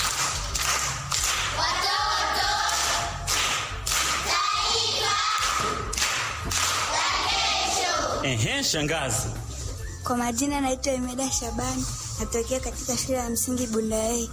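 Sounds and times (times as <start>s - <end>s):
children clapping in a Bundai primary school classroom: 0.0s - 7.2s
speech: 8.3s - 14.3s.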